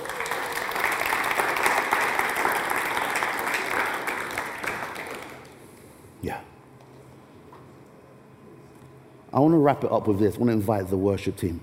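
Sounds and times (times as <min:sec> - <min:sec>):
audience applauding: 0:00.0 - 0:05.6
speech: 0:09.4 - 0:11.6.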